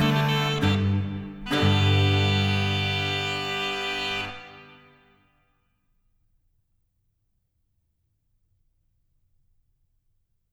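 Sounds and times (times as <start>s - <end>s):
crumhorn playing a branle: 0.0s - 5.1s.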